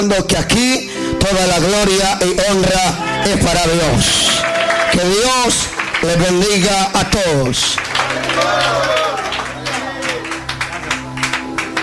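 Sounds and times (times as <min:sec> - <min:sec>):
speech: 0:00.0 - 0:09.0
audience clapping: 0:03.5 - 0:11.8.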